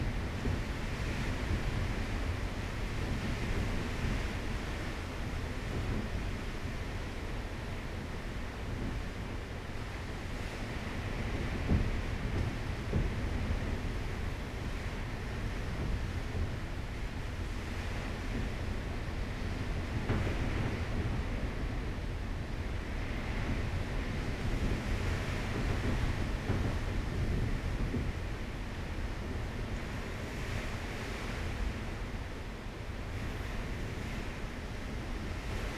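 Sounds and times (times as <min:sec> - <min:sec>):
storm outside a door in Curacao: 0:00.0 - 0:35.7.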